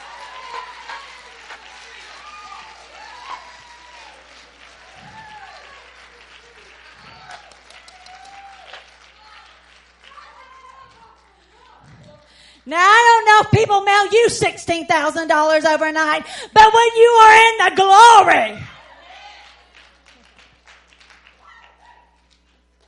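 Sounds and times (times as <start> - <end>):
congregation clapping in praise at a ladies' church conference: 0.0 - 12.5, 19.2 - 22.8
speech: 12.7 - 18.7.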